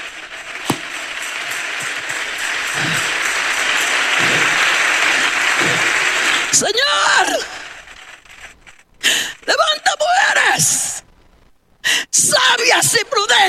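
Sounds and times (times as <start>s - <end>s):
audience applause: 0.0s - 9.6s
speech: 6.5s - 7.6s, 10.5s - 10.9s, 12.3s - 13.4s.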